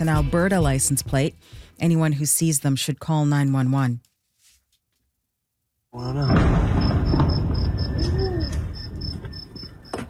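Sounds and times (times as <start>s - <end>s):
speech: 0.0s - 4.1s, 6.0s - 6.7s
crickets chirping: 6.0s - 10.0s
explosion from airstrike: 6.1s - 9.3s.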